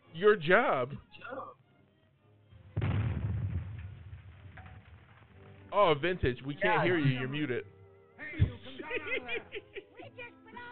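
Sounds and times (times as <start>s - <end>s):
speech: 0.2s - 1.6s, 5.7s - 7.7s, 8.4s - 10.7s
dynamite explosion boom with rumbling tail: 2.8s - 5.3s
laughter: 8.2s - 10.3s.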